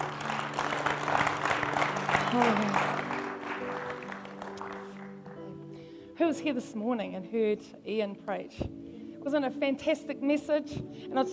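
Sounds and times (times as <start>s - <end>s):
audience clapping: 0.0s - 5.6s
speech: 2.3s - 3.0s, 6.2s - 11.3s.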